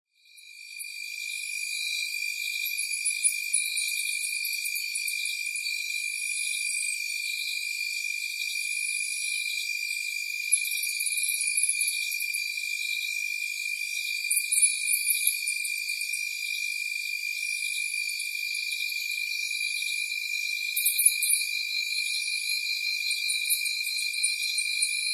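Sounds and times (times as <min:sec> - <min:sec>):
frogs: 0:00.2 - 0:25.1.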